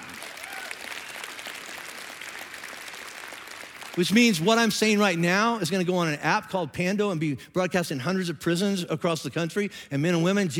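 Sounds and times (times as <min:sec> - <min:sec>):
large audience applause in a reverberant indoor hall in church: 0:00.0 - 0:05.1
speech: 0:04.0 - 0:10.5.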